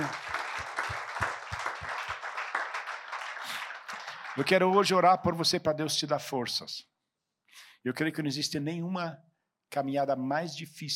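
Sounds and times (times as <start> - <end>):
audience applause: 0.0 - 5.1
speech: 4.4 - 6.9, 7.8 - 10.9.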